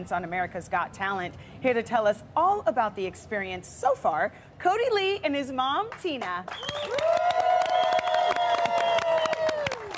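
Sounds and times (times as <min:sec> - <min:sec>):
speech: 0:00.0 - 0:07.4
audience cheering and applause: 0:06.5 - 0:09.9.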